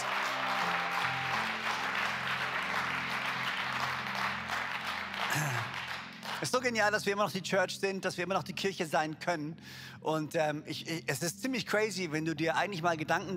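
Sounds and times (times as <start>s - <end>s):
audience applause: 0.0s - 6.5s
sustained low musical tones: 0.0s - 7.0s
speech: 6.4s - 13.3s.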